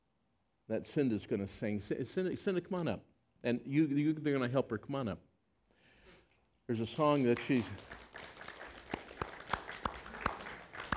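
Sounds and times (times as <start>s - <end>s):
speech: 0.7s - 5.3s, 6.7s - 8.0s
weak audience applause: 6.8s - 10.9s.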